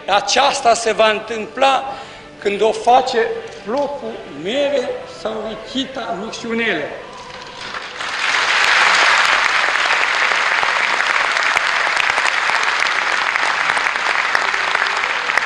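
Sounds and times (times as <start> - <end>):
speech: 0.1 - 7.0
audience applause: 7.4 - 15.4.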